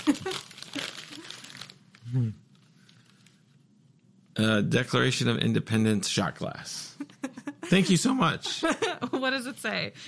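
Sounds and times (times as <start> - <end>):
gift wrapping paper crinkling and ripping: 0.0 - 3.6
speech: 2.1 - 2.4, 4.4 - 7.0, 7.7 - 10.0.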